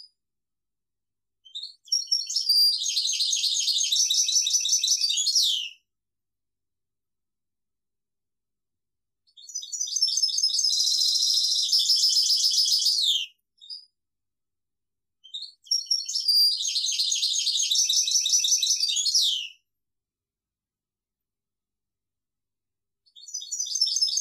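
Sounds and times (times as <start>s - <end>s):
European goldfinch song: 1.4s - 5.8s, 9.3s - 13.9s, 15.2s - 19.6s, 23.0s - 24.1s.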